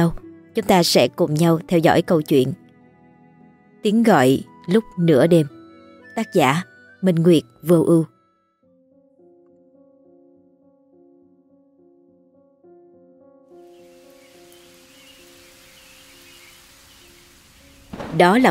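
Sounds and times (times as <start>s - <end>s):
speech: 0.0s - 2.6s, 3.8s - 5.6s, 6.2s - 8.1s, 18.2s - 18.5s
gentle sustained musical tones: 0.0s - 18.5s
heavy summer rain over a small hamlet at a river mouth in Kim Son: 13.7s - 18.5s.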